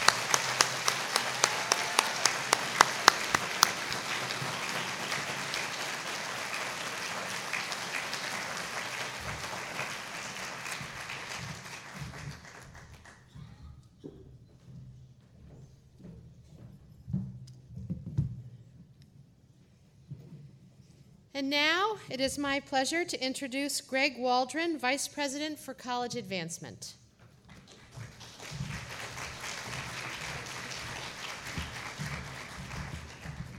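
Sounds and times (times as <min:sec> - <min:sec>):
crowd applauding: 0:00.0 - 0:13.3, 0:27.5 - 0:33.5
speech: 0:21.4 - 0:27.0.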